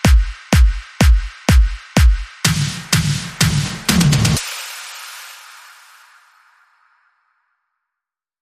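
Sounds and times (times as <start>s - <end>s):
spring break beat: 0.0s - 5.5s.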